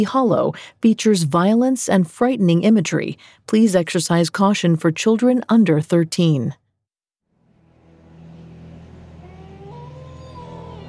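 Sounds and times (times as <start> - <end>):
speech: 0.0 - 6.6
low drone: 7.3 - 10.8
distant wolf howl: 9.2 - 10.8.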